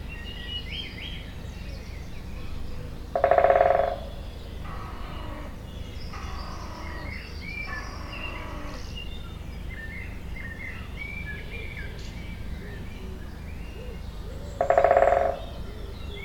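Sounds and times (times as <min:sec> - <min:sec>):
woodpecker drumming: 0:03.0 - 0:07.0, 0:13.8 - 0:15.6.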